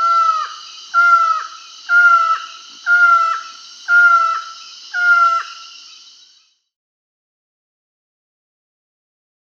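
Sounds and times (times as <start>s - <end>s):
Slaty-backed Forest-Falcon Micrastur mirandollei calling in Peru: 0.0s - 5.7s.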